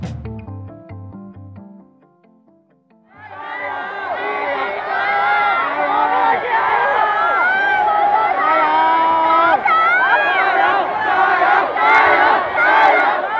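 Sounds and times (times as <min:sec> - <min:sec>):
protest crowd shouting and chanting: 0:03.1 - 0:13.3.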